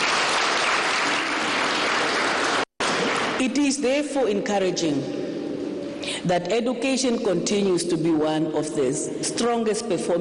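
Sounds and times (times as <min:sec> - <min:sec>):
crowd applauding: 0:00.0 - 0:03.4
speech: 0:03.4 - 0:05.2, 0:06.0 - 0:10.1.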